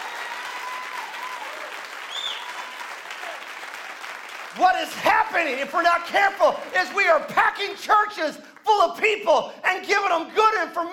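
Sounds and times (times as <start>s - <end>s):
audience hand clap of praise: 0.0s - 8.7s
speech: 4.6s - 10.9s.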